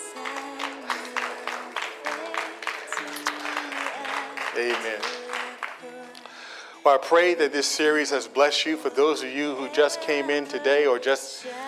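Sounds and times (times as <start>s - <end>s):
audience applause: 0.2s - 5.9s
speech: 4.6s - 5.3s, 6.8s - 11.6s.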